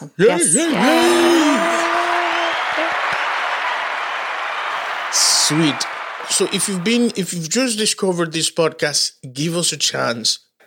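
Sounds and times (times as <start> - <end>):
speech: 0.0 - 1.7, 5.5 - 10.5
high gliding whoop: 0.6 - 7.1
applause sound effect: 0.9 - 8.0.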